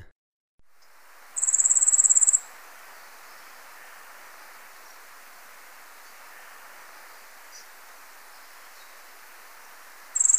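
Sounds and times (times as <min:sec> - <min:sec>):
yellow-faced grassquit high buzzy trill in Ecuador: 0:00.7 - 0:10.3.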